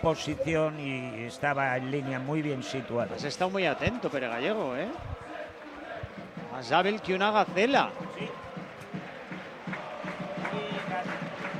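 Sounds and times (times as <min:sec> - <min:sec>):
speech: 0:00.0 - 0:05.2, 0:06.6 - 0:08.4
football stadium crowd chanting during a Hércules versus San Andreu match: 0:00.0 - 0:11.5
regular rhythmic beats: 0:03.3 - 0:11.5.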